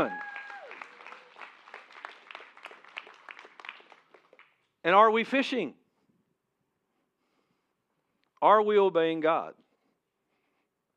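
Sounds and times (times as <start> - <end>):
audience clapping: 0.0 - 4.7
speech: 4.9 - 5.8, 8.4 - 9.6.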